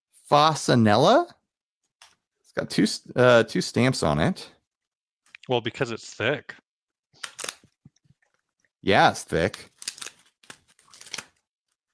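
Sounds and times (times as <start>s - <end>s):
speech: 0.3s - 1.4s, 2.6s - 4.6s, 5.5s - 6.6s, 8.8s - 9.7s
thick cardboard package sealed with packing tape being cut and torn open: 7.2s - 7.6s, 9.8s - 11.4s.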